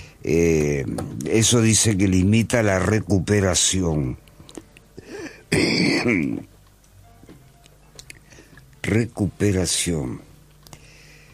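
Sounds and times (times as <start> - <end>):
speech: 0.2 - 4.2, 5.5 - 6.5, 8.9 - 10.3
mouth and throat noises: 4.2 - 6.5
harsh loud cough: 5.1 - 6.4.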